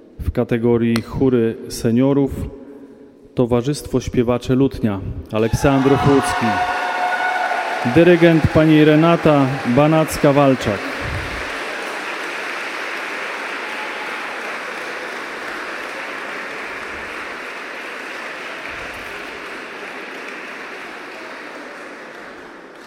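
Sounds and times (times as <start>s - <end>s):
speech: 0.4s - 2.6s, 3.4s - 6.8s, 7.8s - 10.9s
audience applause: 5.4s - 22.8s.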